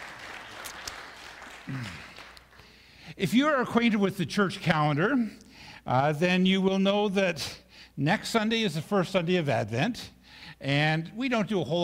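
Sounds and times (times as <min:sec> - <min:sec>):
audience applause: 0:00.0 - 0:02.6
speech: 0:01.7 - 0:02.1, 0:03.1 - 0:11.8.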